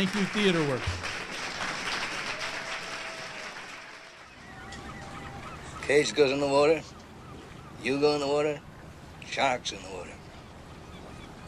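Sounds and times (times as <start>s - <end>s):
speech: 0.0s - 1.1s, 5.9s - 7.0s, 7.8s - 8.7s, 9.3s - 10.2s
audience applause: 0.0s - 4.6s.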